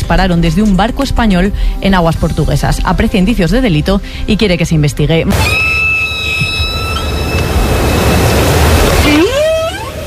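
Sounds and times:
speech: 0.1 - 5.7
humpback whale call: 5.5 - 10.0.

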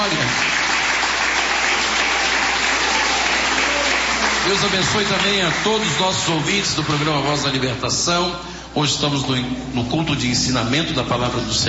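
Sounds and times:
audience clapping: 0.0 - 7.8
speech: 4.5 - 11.6.

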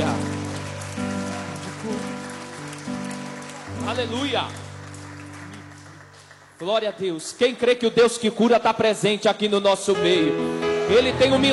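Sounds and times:
audience applause: 0.0 - 7.2
speech: 3.9 - 4.6, 6.6 - 11.5.

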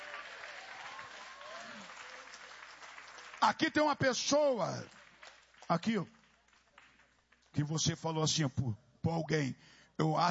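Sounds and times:
audience clapping hands: 0.0 - 7.6
speech: 3.4 - 5.0, 5.7 - 6.2, 7.6 - 10.3.

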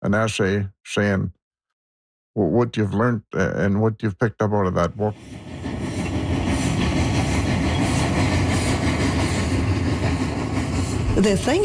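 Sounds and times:
speech: 0.1 - 1.4, 2.4 - 5.5, 11.2 - 11.6
train passing on main railway line: 4.9 - 11.6.

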